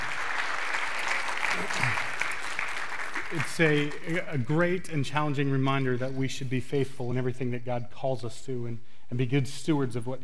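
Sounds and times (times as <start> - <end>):
audience applause: 0.0 - 4.4
speech: 1.6 - 2.1, 3.3 - 10.2.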